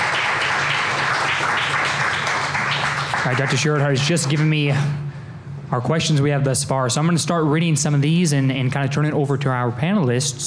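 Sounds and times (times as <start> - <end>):
audience applause for panelists: 0.0 - 4.5
speech: 3.2 - 10.4.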